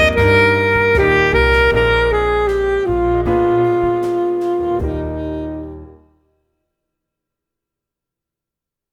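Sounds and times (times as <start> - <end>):
full saxophone ensemble playing a larghetto: 0.0 - 6.0.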